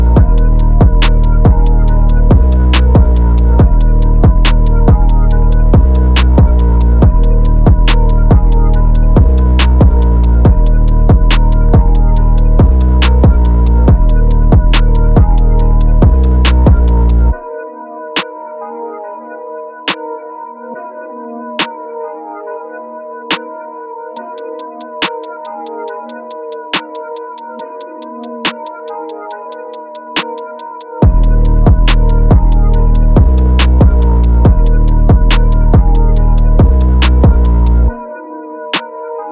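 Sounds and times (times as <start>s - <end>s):
music beat: 0.0s - 17.4s, 24.1s - 38.0s.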